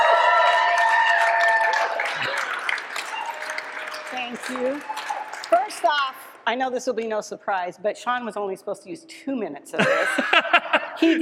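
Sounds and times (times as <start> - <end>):
audience applause: 0.0 - 6.3
laughter: 2.0 - 2.7, 9.8 - 11.2
speech: 5.8 - 11.2.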